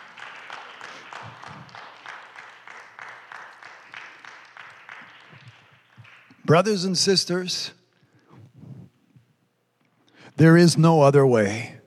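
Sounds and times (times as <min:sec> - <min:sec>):
audience clapping: 0:00.0 - 0:07.0
speech: 0:06.5 - 0:07.8, 0:10.4 - 0:11.8.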